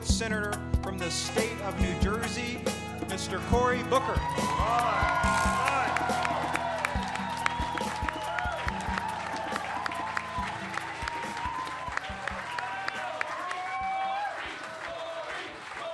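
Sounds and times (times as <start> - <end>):
speech: 0.1 - 5.5
cheering: 3.8 - 15.9
audience applause greeting Senator Cory Booker: 4.1 - 15.9.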